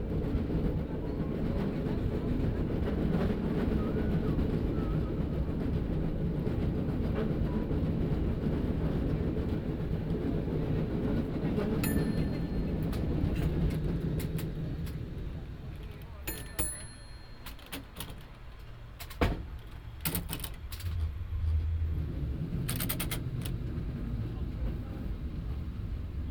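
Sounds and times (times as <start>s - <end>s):
cable car miscellaneous noises in San Francisco: 0.0s - 26.3s.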